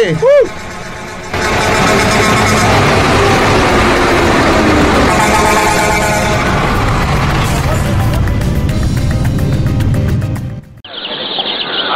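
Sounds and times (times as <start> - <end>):
speech: 0.0 - 0.7
car horns honking: 0.0 - 7.6
idling engines rumbling: 0.0 - 10.7
street noise: 0.0 - 11.9.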